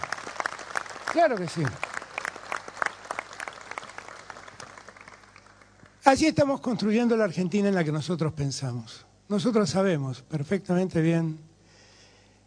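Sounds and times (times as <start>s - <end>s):
audience applause: 0.0s - 6.0s
speech: 1.1s - 1.9s, 6.1s - 11.5s.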